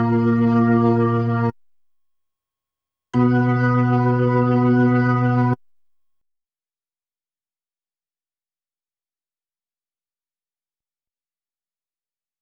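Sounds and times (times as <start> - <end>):
Hammond B3 organ: 0.0 - 1.5, 3.2 - 5.6.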